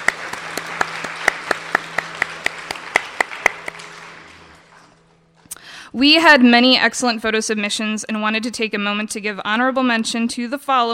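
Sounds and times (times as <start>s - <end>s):
audience applauding: 0.0s - 5.2s
speech: 5.9s - 10.9s.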